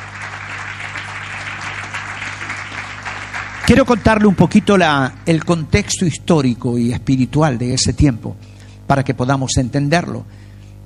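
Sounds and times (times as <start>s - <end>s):
audience applauding: 0.0s - 5.7s
speech: 3.7s - 10.5s.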